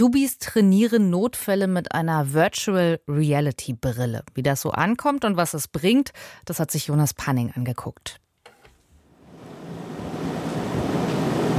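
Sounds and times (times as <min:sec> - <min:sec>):
speech: 0:00.0 - 0:08.2
air conditioner rattling in a training room at Cologne University Hospital: 0:09.4 - 0:11.5.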